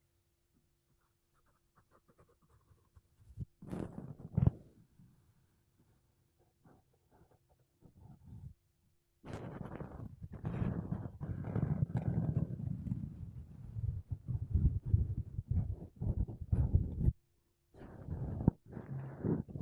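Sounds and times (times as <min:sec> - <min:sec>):
makeup brushes and a sponge rubbing across a microphone: 0:01.0 - 0:04.7, 0:09.3 - 0:17.2, 0:17.8 - 0:19.6.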